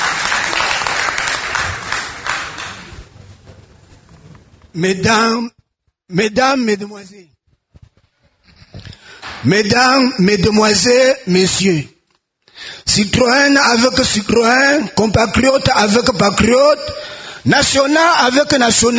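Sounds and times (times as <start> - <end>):
audience applause: 0.0 - 3.2
speech: 4.7 - 7.4, 9.4 - 11.9, 12.6 - 18.9.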